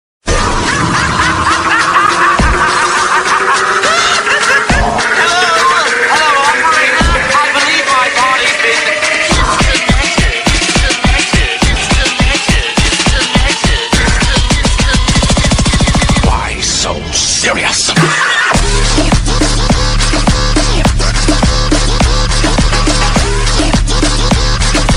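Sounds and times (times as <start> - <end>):
laughter: 0.3 - 8.3, 17.9 - 18.8
song remix ringtone: 0.8 - 16.5, 17.9 - 24.9.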